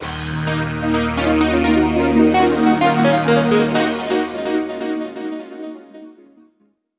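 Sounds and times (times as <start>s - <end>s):
game level failed jingle: 0.5s - 6.0s.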